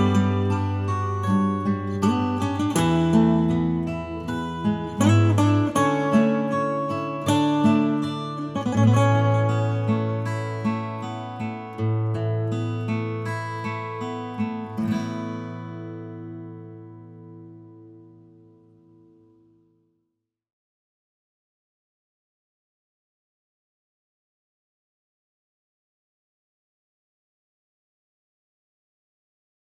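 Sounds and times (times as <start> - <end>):
acoustic music: 0.0 - 19.4.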